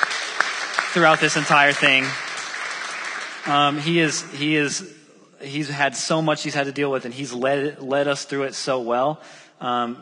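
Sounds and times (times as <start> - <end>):
audience applause: 0.0 - 4.2
speech: 0.9 - 2.2, 3.4 - 9.9.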